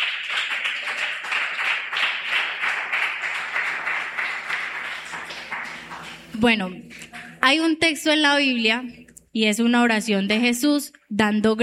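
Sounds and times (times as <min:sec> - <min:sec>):
crowd applause: 0:00.0 - 0:06.4
speech: 0:06.4 - 0:11.6.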